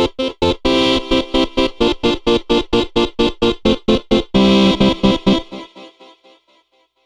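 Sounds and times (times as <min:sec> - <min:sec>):
distorted Farfisa organ: 0:00.1 - 0:05.6.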